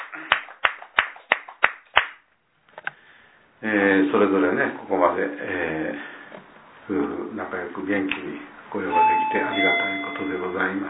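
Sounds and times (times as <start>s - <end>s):
hand claps at a morning church prayer gathering: 0.0s - 2.3s
speech: 3.6s - 6.2s, 6.9s - 10.8s.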